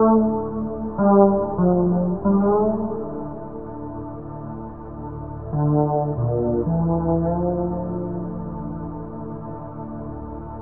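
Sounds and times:
sad keyboard music: 0.0s - 10.6s.

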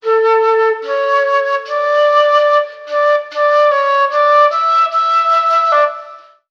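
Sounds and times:
flute loops: 0.0s - 6.4s.

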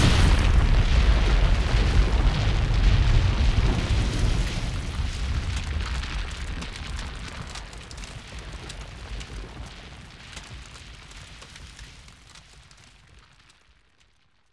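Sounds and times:
explosion: 0.0s - 10.0s.

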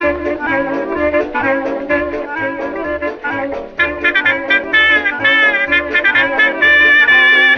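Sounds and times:
horn loops: 0.0s - 7.5s.

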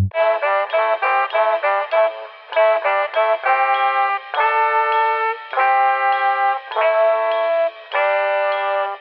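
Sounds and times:
horns: 0.1s - 8.9s.

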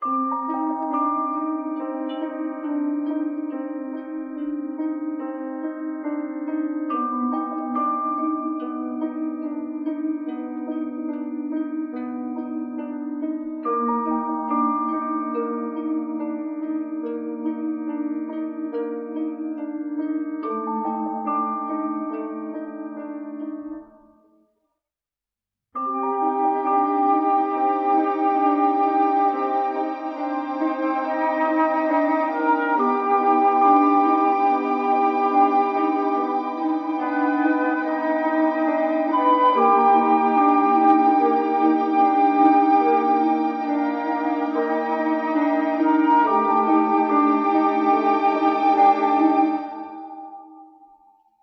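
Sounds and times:
sad vibraphone and strings: 0.0s - 24.0s, 25.8s - 50.9s.

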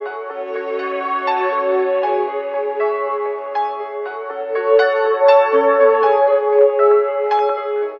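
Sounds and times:
sad piano loop: 0.0s - 7.9s.

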